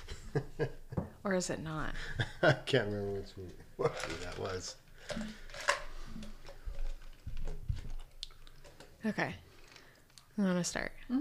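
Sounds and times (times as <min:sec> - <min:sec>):
speech: 0:00.4 - 0:05.6, 0:09.0 - 0:09.4, 0:10.4 - 0:11.1
ice being chewed: 0:03.8 - 0:10.3.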